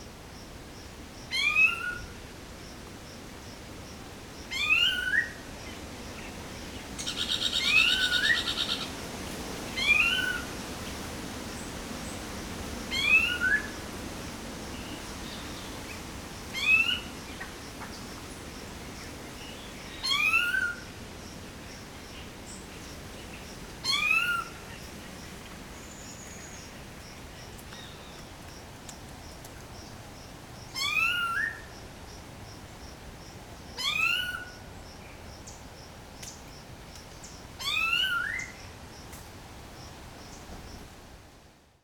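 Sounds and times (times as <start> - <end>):
light wind in trees in a forest at dawn: 0.0 - 41.8.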